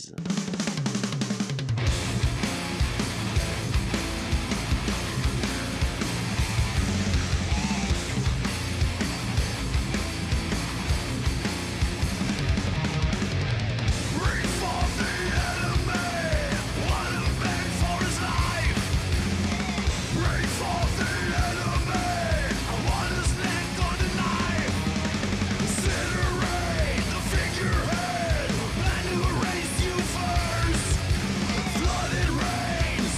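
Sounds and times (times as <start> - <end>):
heavy metal song: 0.0 - 33.1
thick distorted guitars: 0.0 - 33.1
pounding drums: 0.4 - 33.1.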